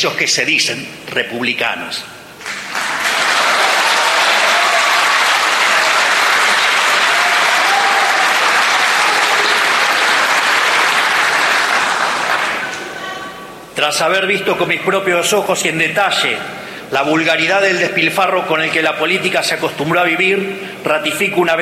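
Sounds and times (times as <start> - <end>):
speech: 0.0 - 2.2, 13.9 - 21.6
audience applause: 2.4 - 13.0.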